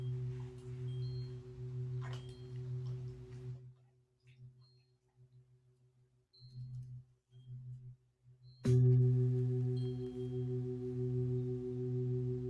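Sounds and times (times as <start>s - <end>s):
three large singing bowls ringing in a sound-healing session: 0.0s - 3.6s, 8.4s - 12.4s.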